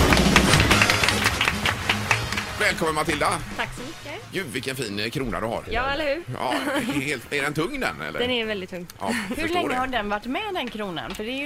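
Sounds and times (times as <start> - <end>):
audience applauding: 0.0 - 4.2
speech: 2.7 - 11.4
laughter: 6.3 - 7.7, 9.0 - 9.9.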